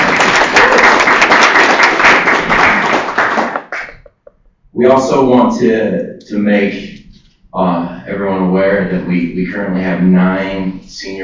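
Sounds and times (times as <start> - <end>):
audience clapping to welcome someone: 0.0 - 4.2
speech: 4.8 - 6.9, 7.6 - 11.2.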